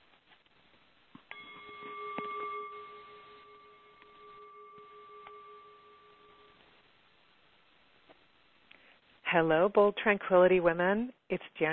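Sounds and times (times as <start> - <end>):
bell struck and ringing: 1.3 - 6.6
speech: 9.3 - 11.7.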